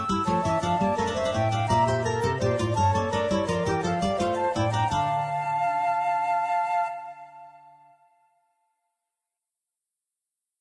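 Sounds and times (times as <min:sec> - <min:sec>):
guitars: 0:00.0 - 0:05.9
flutes: 0:00.0 - 0:08.5.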